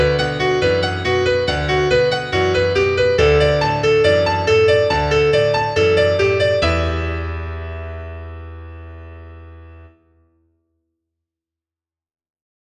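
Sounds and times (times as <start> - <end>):
nursery rhyme on piano: 0.0 - 10.0.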